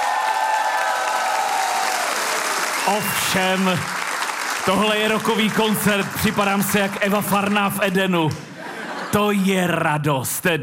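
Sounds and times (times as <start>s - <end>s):
packed hall audience applauding in Čelákovice: 0.0s - 8.4s
speech: 2.9s - 4.0s, 4.6s - 8.5s, 9.1s - 10.6s
laughter: 8.3s - 9.8s.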